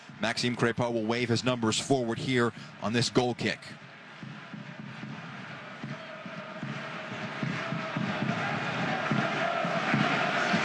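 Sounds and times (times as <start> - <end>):
speech: 0.2 - 3.8
Toronto fans' crowd roar behind the goalkeeper at a soccer match: 4.6 - 10.6.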